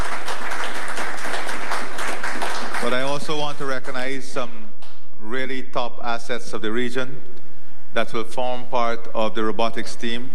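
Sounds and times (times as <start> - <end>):
audience applause for local doctors and their team: 0.0 - 4.2
speech: 2.9 - 4.6, 5.2 - 7.3, 7.9 - 10.3.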